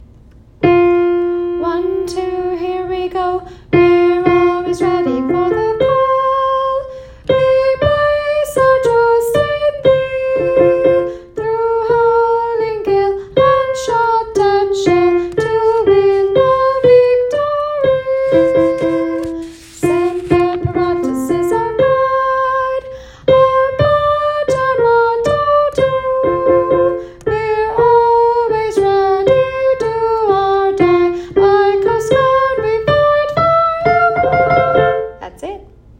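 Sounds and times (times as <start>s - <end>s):
Coast Guard soprano singing military songs with chorus: 1.6s - 35.1s.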